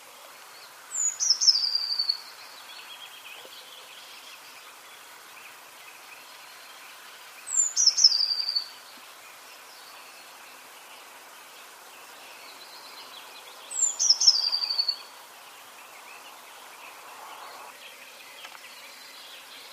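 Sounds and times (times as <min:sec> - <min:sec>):
Eurasian blue tit Cyanistes giving a high phrase: 0:00.0 - 0:19.7.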